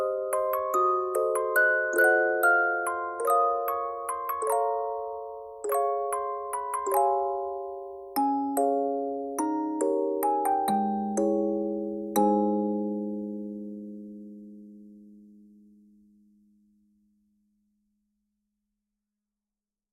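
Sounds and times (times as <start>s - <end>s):
music box melody: 0.0s - 14.3s.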